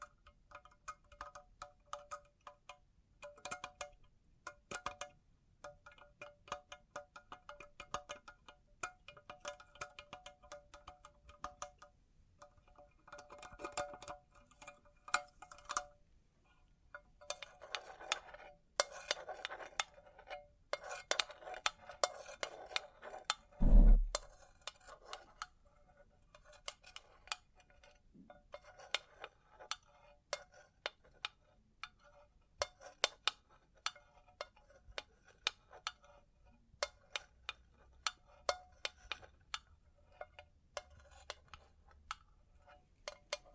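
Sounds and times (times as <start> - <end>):
small bright metallic clicks and taps: 0.0 - 25.5, 26.4 - 43.5
heavy knock: 23.6 - 24.2.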